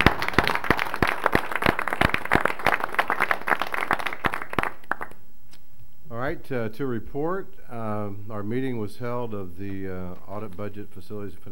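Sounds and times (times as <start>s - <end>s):
meeting attendees applauding: 0.0s - 5.2s
speech: 6.3s - 11.5s.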